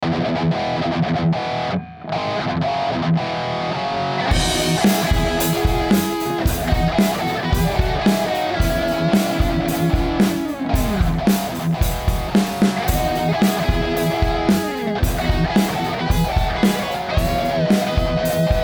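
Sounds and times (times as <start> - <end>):
guitar: 0.0 - 18.6.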